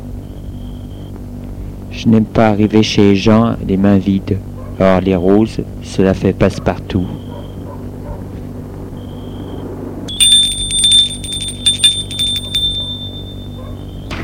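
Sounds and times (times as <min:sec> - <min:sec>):
speech: 0:01.9 - 0:07.2
doorbell ringing: 0:10.1 - 0:13.8.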